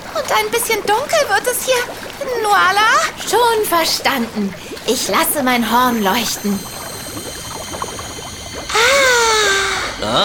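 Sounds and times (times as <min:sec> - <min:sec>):
water bubbling up from a cellar: 0:00.0 - 0:10.2
speech: 0:00.2 - 0:06.7, 0:10.0 - 0:10.2
loud hissing wash with a wavering falling tonal whine: 0:04.0 - 0:10.2.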